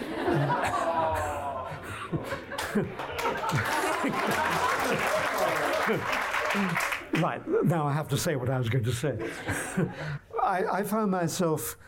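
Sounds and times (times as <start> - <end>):
people chuckling: 0.0 - 6.9, 9.2 - 10.2
speech: 2.2 - 5.0, 5.9 - 11.8
crowd applauding: 2.4 - 7.3.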